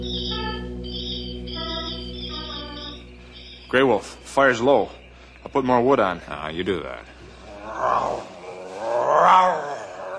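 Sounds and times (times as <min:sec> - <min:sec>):
speech: 0:03.7 - 0:07.2, 0:07.8 - 0:08.3
grizzly bear roaring: 0:07.5 - 0:10.1.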